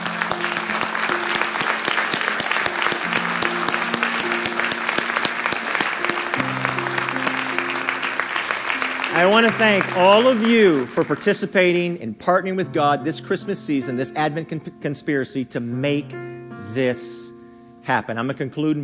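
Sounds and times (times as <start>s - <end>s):
round of applause: 0.0s - 11.8s
speech: 9.2s - 18.8s.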